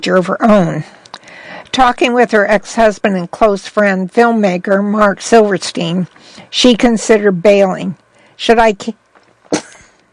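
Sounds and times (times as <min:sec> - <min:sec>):
speech: 0:00.0 - 0:01.0, 0:01.8 - 0:09.0
quick sneeze: 0:09.5 - 0:09.9.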